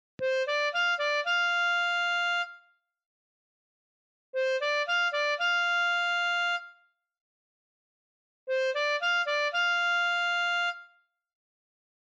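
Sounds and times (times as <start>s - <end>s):
blues harmonica without swing: 0.2s - 2.4s, 4.4s - 6.5s, 8.5s - 10.6s.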